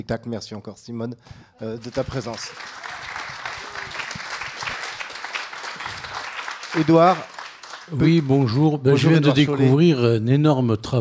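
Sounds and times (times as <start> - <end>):
speech: 0.0 - 2.9, 6.8 - 11.0
audience applauding warmly: 1.6 - 9.1.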